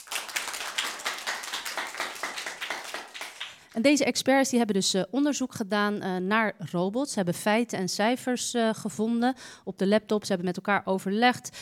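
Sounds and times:
audience applause: 0.0s - 3.7s
speech: 3.8s - 11.6s.

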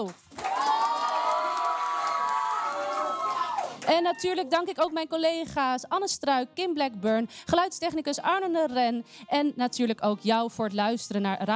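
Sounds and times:
speech: 0.0s - 0.2s, 3.9s - 11.5s
thunderous audience applause: 0.3s - 4.2s.

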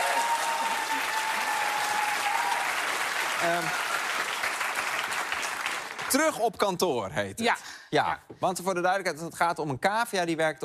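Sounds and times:
applause: 0.0s - 6.4s
speech: 3.4s - 3.8s, 6.1s - 10.6s.

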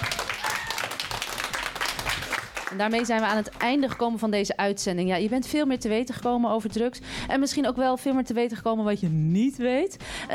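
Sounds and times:
audience applause for debaters: 0.0s - 3.8s
speech: 2.7s - 10.3s.

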